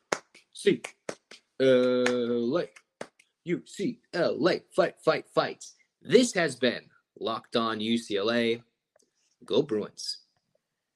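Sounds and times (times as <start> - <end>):
sharp, crisp hand claps in a loose rhythm: 0.0 - 3.3
speech: 0.6 - 1.0, 1.6 - 2.8, 3.4 - 8.7, 9.4 - 10.2.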